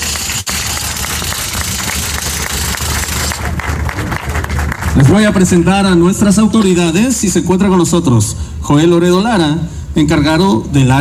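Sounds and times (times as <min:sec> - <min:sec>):
audience applause: 0:00.0 - 0:05.5
speech: 0:05.0 - 0:10.9.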